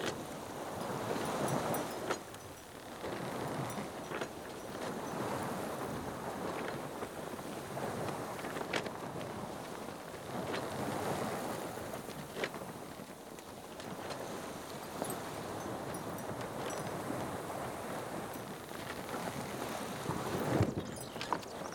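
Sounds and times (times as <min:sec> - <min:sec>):
sailboat on a lake: 0:00.0 - 0:21.7.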